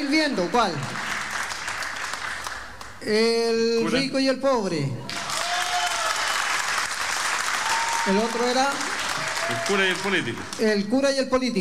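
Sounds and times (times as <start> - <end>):
audience applause: 0.0 - 3.0, 5.1 - 10.8
speech: 0.2 - 1.0, 3.0 - 5.2, 8.0 - 8.9, 9.5 - 11.5.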